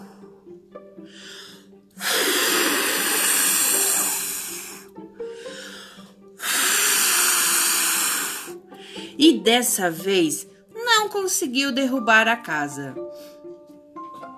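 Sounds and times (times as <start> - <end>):
narrator imitating wolf blowing hard: 1.0 - 9.2
speech: 9.2 - 10.5, 11.2 - 13.2.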